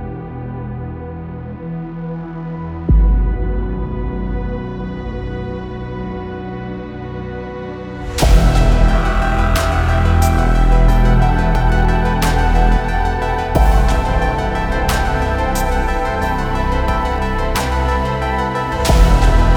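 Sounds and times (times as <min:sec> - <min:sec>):
orchestral sci-fi cinematic music: 0:00.0 - 0:19.5.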